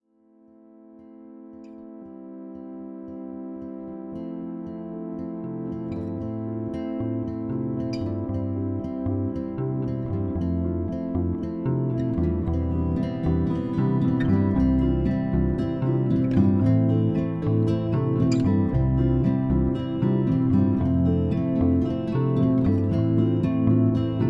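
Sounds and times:
music: 0.0s - 24.2s.

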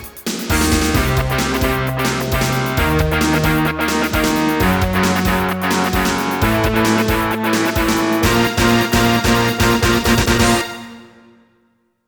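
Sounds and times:
Roland SC-55 continue jingle: 0.5s - 10.7s.

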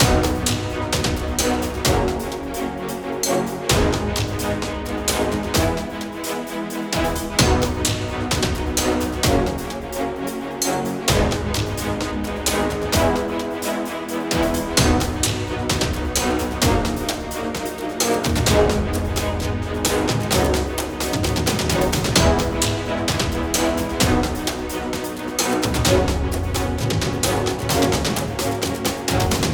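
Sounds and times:
orchestral music loop: 0.0s - 29.5s.

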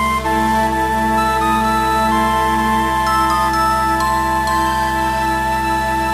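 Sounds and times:
jingle: 0.2s - 5.9s.

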